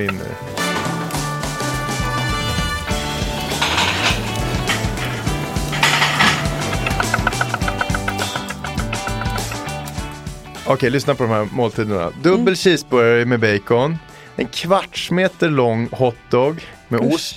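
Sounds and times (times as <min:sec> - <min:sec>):
speech: 0:00.0 - 0:00.6, 0:10.7 - 0:17.3
hissing sizzle in a restaurant kitchen: 0:00.7 - 0:10.5
utensils and cookware clattering in a busy restaurant kitchen: 0:03.0 - 0:10.0.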